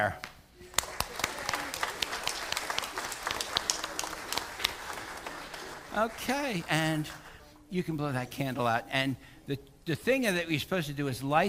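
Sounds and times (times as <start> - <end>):
speech: 0.0 - 0.3, 6.0 - 11.4
church congregation clapping to welcome a newly baptized member: 0.6 - 7.4.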